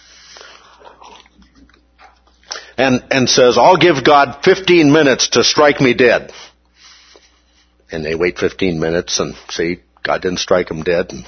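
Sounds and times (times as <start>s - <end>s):
person sipping and swallowing water from a glass: 0.1s - 2.8s
speech: 2.8s - 6.5s, 7.9s - 11.2s.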